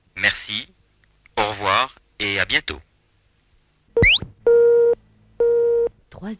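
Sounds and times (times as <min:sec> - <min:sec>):
speech: 0:00.5 - 0:00.8, 0:02.4 - 0:02.9
answering machine beep: 0:04.0 - 0:05.9.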